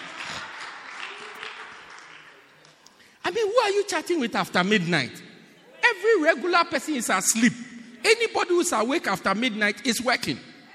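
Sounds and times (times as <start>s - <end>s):
audience clapping: 0.0s - 3.1s
speech: 3.3s - 5.2s, 6.0s - 10.5s.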